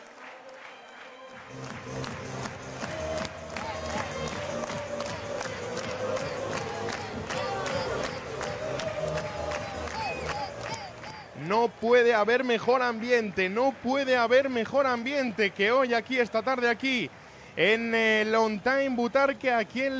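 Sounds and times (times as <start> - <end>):
stadium crowd clapping: 0.0 - 19.9
speech: 1.5 - 2.1, 11.5 - 19.9.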